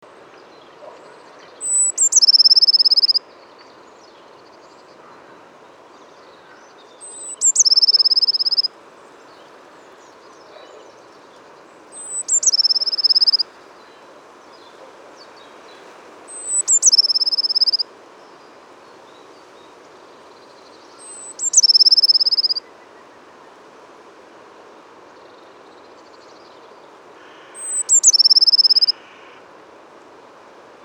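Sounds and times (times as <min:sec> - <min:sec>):
quiet hiss: 0:00.0 - 0:30.8
Eurasian blue tit call with high note, chips and trill: 0:01.6 - 0:03.2, 0:07.1 - 0:08.7, 0:12.0 - 0:13.4, 0:16.3 - 0:17.8, 0:21.1 - 0:22.6, 0:27.6 - 0:29.0.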